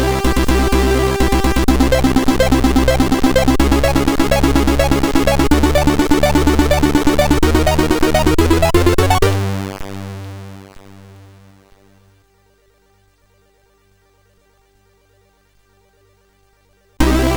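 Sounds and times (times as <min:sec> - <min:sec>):
MOS6581R4 SID chip music: 0:00.0 - 0:11.4, 0:17.0 - 0:17.3.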